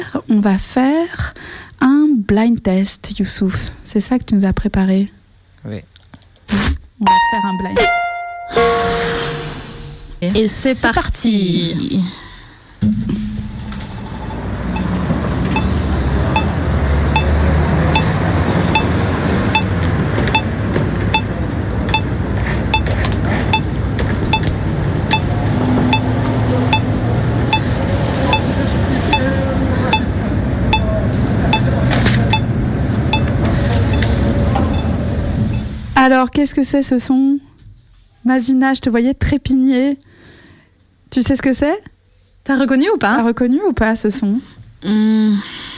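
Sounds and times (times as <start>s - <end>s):
speech: 0.0s - 5.9s, 6.5s - 9.4s, 10.2s - 12.2s, 36.1s - 37.5s, 38.3s - 40.1s, 41.1s - 45.7s
pedestrian traffic light crossing signal: 14.4s - 35.7s.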